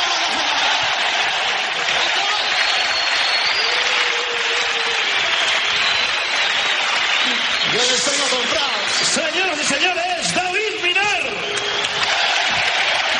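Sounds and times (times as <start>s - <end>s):
audience applause: 0.0s - 13.1s.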